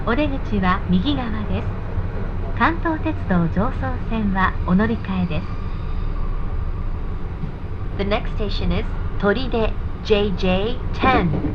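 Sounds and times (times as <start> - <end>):
people talking on a Jōban Line local train: 0.0 - 1.6, 2.6 - 5.4, 8.0 - 11.5
Jōban Line local train rumble: 0.0 - 11.5.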